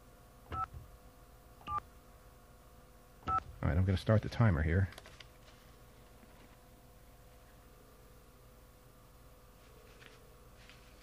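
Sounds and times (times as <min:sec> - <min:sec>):
telephone keypad DTMF tones: 0:00.5 - 0:00.8, 0:01.6 - 0:01.8, 0:03.2 - 0:03.5
speech: 0:03.7 - 0:05.1.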